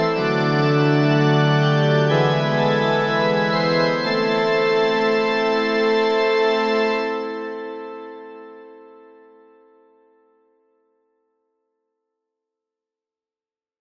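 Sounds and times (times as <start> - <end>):
organ: 0.0 - 9.8.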